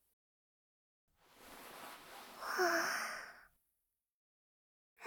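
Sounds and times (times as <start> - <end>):
ASMR massage sounds: 1.3 - 2.6.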